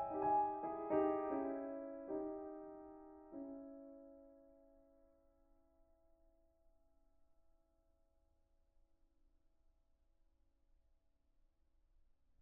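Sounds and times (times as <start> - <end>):
piano: 0.0 - 5.3.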